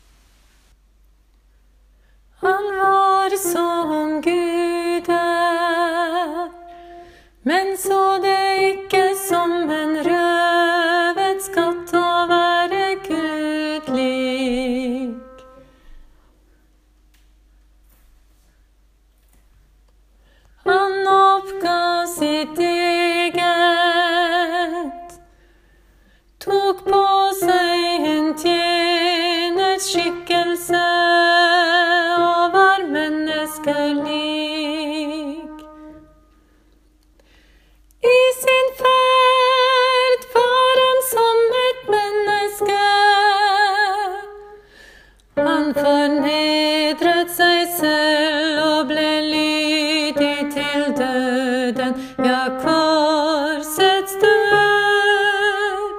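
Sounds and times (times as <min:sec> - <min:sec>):
alto voice singing a hymn: 0:02.4 - 0:15.6, 0:20.6 - 0:25.3, 0:26.4 - 0:36.2, 0:38.0 - 0:44.6, 0:45.4 - 0:55.9.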